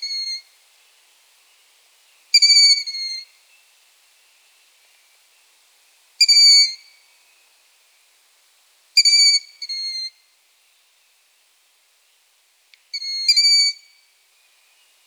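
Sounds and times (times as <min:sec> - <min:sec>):
long-eared owl chicks giving squeaky calls: 0:00.0 - 0:00.4, 0:02.4 - 0:03.2, 0:06.2 - 0:06.8, 0:09.0 - 0:10.1, 0:12.9 - 0:13.9.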